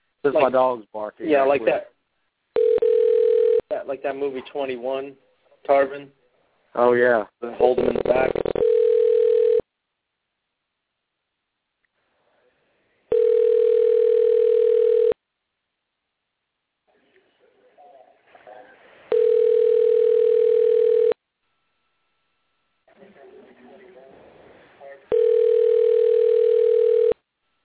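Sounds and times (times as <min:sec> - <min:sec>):
speech: 0:00.2 - 0:01.9, 0:03.7 - 0:06.2, 0:06.8 - 0:08.4
unanswered telephone call ringback tones: 0:02.6 - 0:03.6, 0:08.3 - 0:09.6, 0:13.1 - 0:15.2, 0:19.1 - 0:21.2, 0:25.1 - 0:27.2.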